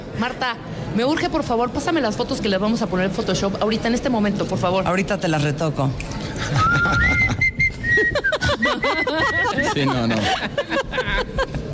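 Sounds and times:
busy murmur: 0.0 - 11.7
speech: 0.2 - 7.4, 8.0 - 11.6
laughter: 6.2 - 11.7
person whistling a tune: 6.6 - 9.6.

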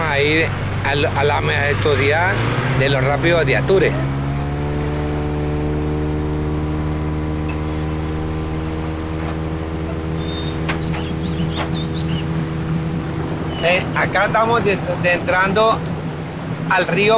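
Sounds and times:
motorboat engine droning on a river: 0.0 - 17.1
speech: 0.2 - 4.2, 13.6 - 15.9, 16.7 - 17.1
high chirps: 9.9 - 12.4, 13.4 - 14.0.

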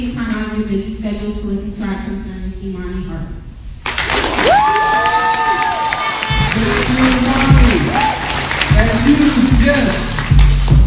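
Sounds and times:
speech: 0.6 - 3.5, 6.6 - 8.0
audience applause: 3.9 - 10.8.

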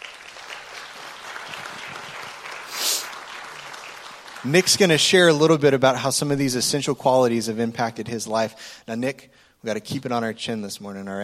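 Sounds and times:
church congregation applause during a morning service: 0.0 - 5.9
speech: 4.4 - 11.2.

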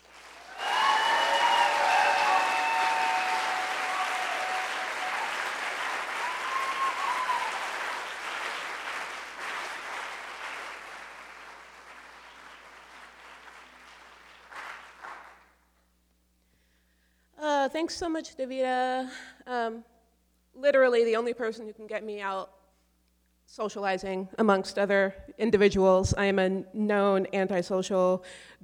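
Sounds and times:
audience applause at a PechaKucha Night event in Seattle: 0.0 - 15.5
speech: 17.7 - 19.9, 20.6 - 22.6, 23.5 - 28.6.

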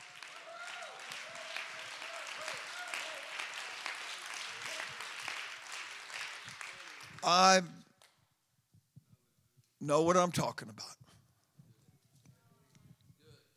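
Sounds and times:
audience clapping hands: 0.0 - 8.2
speech: 7.2 - 7.8, 9.8 - 11.0.

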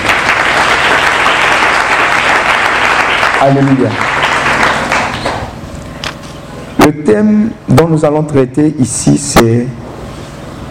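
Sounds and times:
church congregation applause: 0.0 - 5.6
speech: 3.4 - 4.2, 6.9 - 9.9.

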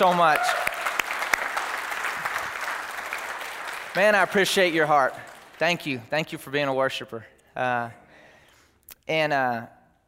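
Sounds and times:
speech: 0.0 - 0.7, 4.0 - 8.0, 9.1 - 9.8
audience applause: 0.0 - 6.0.

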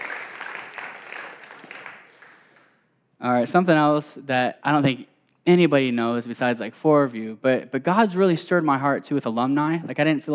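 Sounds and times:
audience clapping: 0.0 - 2.8
speech: 3.2 - 10.3.

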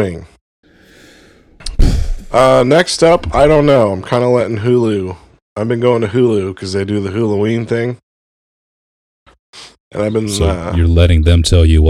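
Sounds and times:
speech: 0.0 - 0.4, 2.3 - 8.0, 9.5 - 11.8
breathy intake: 0.7 - 2.3.

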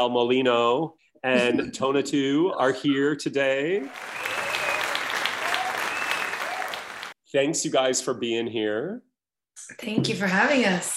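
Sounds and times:
speech: 0.0 - 4.4, 7.3 - 10.9
audience applause welcoming guests: 3.8 - 7.2.

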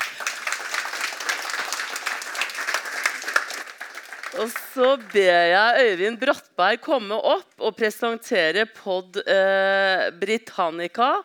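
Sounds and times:
audience applause: 0.0 - 5.2
speech: 4.4 - 11.2.

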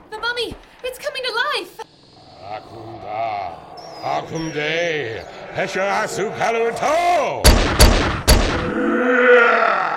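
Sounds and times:
speech: 4.3 - 7.8, 8.6 - 9.9
gunshots: 7.4 - 8.7.

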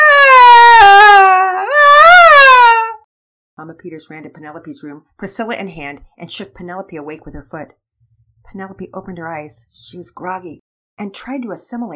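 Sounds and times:
baby screaming in bed: 0.0 - 3.0
speech: 3.8 - 7.8, 8.5 - 11.9.

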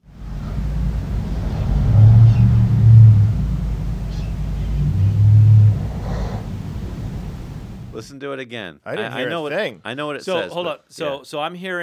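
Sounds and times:
low rumbling car engine revving: 0.1 - 8.0
speech: 8.0 - 11.8.

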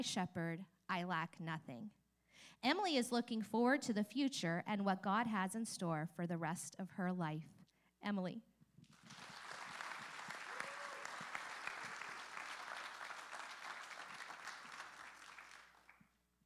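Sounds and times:
speech: 0.0 - 8.5
audience applauding: 8.9 - 16.1.

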